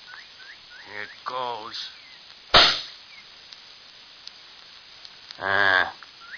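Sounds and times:
speech: 0:00.9 - 0:02.0, 0:05.4 - 0:06.0
rifle shot: 0:02.5 - 0:03.0.

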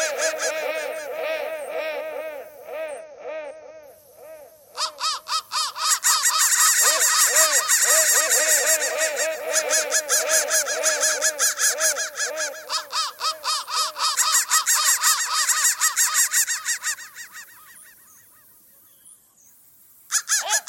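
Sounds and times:
crow cawing: 0:00.0 - 0:18.0, 0:20.1 - 0:20.6.

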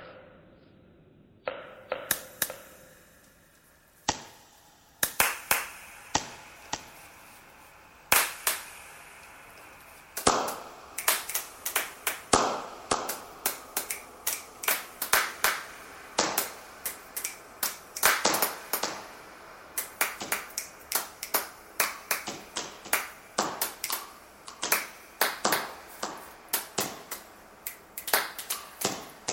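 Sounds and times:
thread clapping noise: 0:01.5 - 0:29.3.

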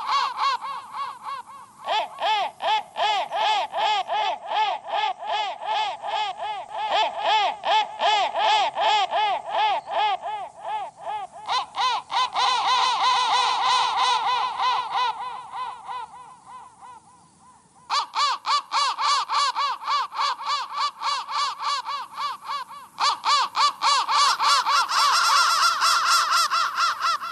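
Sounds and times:
crow cawing: 0:00.0 - 0:27.2.

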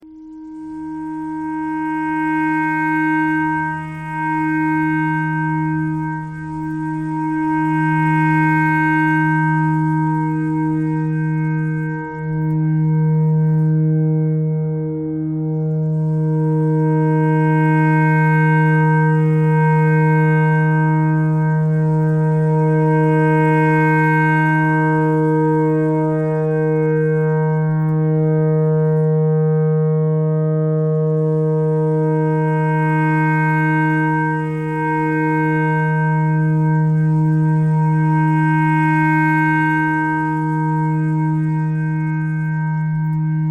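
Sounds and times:
pentatonic clarinet notes: 0:00.0 - 0:43.4.

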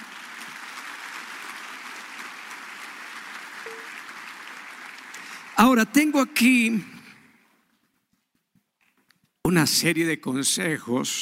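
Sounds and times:
audience applause: 0:00.0 - 0:06.8
speech: 0:05.6 - 0:06.9, 0:09.5 - 0:11.2.

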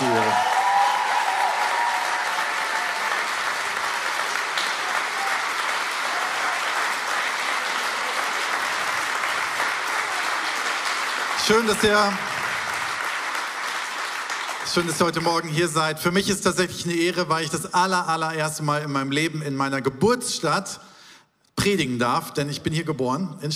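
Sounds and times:
audience applause: 0:00.0 - 0:15.2
speech: 0:11.5 - 0:12.3, 0:14.7 - 0:20.9, 0:21.6 - 0:23.5.

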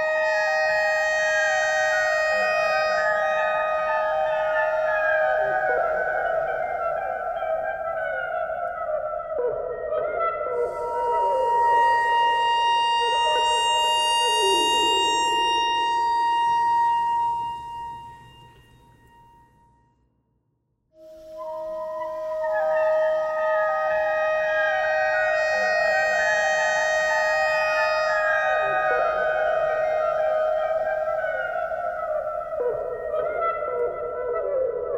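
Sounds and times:
clarinet notes: 0:00.0 - 0:19.6, 0:21.0 - 0:34.8.

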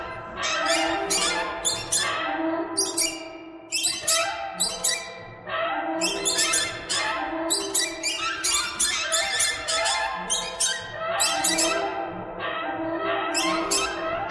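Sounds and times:
many birds calling: 0:00.0 - 0:12.1, 0:13.0 - 0:14.3.

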